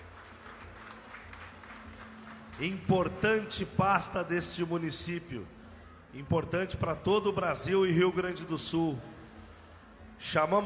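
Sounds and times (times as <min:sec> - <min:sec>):
crowd applauding: 0:00.0 - 0:03.2
speech: 0:02.6 - 0:09.1, 0:10.2 - 0:10.6.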